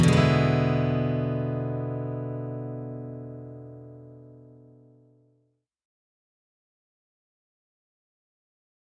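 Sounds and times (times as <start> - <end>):
12 bar blues music: 0.0 - 2.9.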